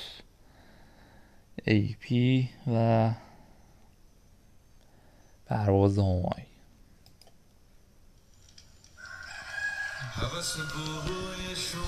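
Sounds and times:
speech: 1.6 - 3.2, 5.5 - 6.5, 10.2 - 11.8
rooster crowing: 8.9 - 11.8.

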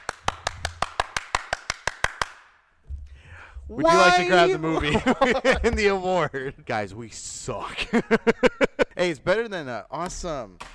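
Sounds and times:
hand clapping: 0.0 - 2.6, 10.0 - 10.7
speech: 3.7 - 10.7
laughter: 3.9 - 6.7, 7.6 - 9.2.

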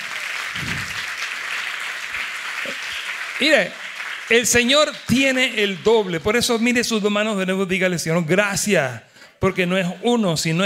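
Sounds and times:
audience applauding: 0.0 - 6.7
speech: 3.4 - 10.6.

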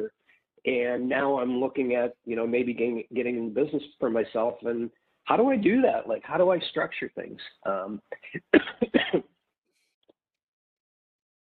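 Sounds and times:
speech: 0.7 - 9.3
person coughing after coffee went down the wrong way: 8.1 - 9.3.

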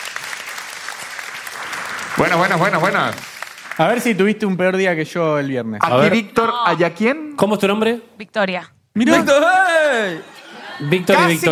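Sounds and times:
audience applause for the show's producer: 0.0 - 4.4
speech: 2.2 - 11.5
laughter: 9.0 - 11.5.

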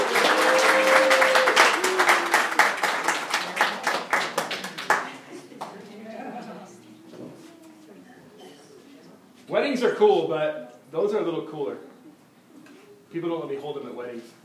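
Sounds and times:
audience applause: 0.0 - 5.8
speech: 10.0 - 11.9, 13.1 - 14.4.

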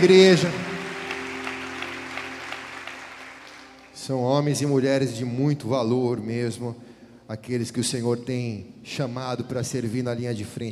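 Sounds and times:
speech: 0.0 - 0.6, 4.1 - 10.7
audience applause: 0.0 - 4.0.

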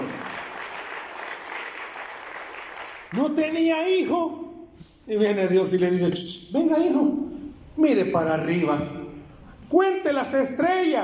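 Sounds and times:
applause: 0.0 - 3.4
speech: 3.1 - 4.4, 5.1 - 9.0, 9.7 - 11.0.

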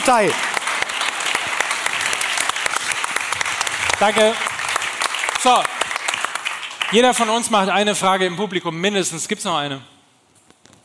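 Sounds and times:
speech: 0.0 - 0.6, 4.0 - 4.5, 5.4 - 5.8, 6.9 - 9.9
audience applause: 0.0 - 7.5.

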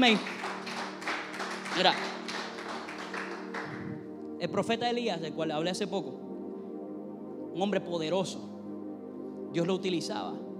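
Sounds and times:
speech: 0.0 - 0.3, 1.8 - 2.2, 4.4 - 6.2, 7.6 - 8.5, 9.5 - 10.5
audience clapping: 0.0 - 4.0.

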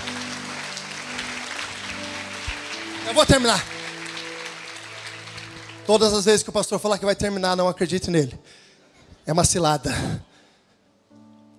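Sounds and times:
audience applauding: 0.0 - 7.0
speech: 3.1 - 3.7, 5.9 - 8.6, 9.3 - 10.3.

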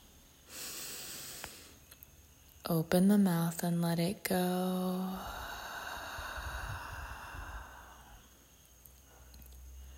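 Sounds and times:
deep inhale through the nose during a guided breathing exercise: 0.4 - 1.8, 5.1 - 8.4
speech: 2.7 - 5.4.

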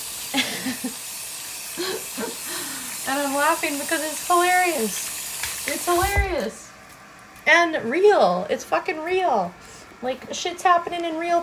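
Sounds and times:
toilet flushing: 0.0 - 6.6
water running for handwashing: 0.0 - 6.6
speech: 3.1 - 6.6, 7.5 - 11.4.

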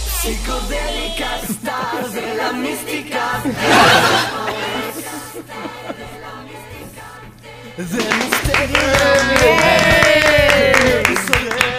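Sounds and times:
speech: 0.2 - 7.0, 7.8 - 11.4
laughter: 1.4 - 6.5, 7.7 - 11.6
applause: 8.0 - 11.7.

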